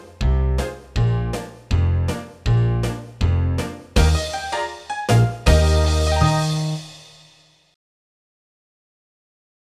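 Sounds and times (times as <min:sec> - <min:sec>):
slow ragtime music: 0:00.0 - 0:07.4.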